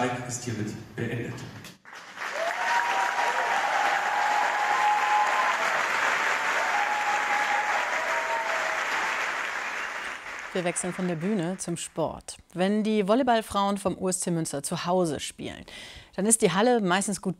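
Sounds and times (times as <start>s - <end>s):
speech: 0.0s - 1.7s, 10.6s - 17.3s
audience applause after theatre performance: 1.9s - 11.7s
faint audience whistles or cheers: 2.2s - 10.4s.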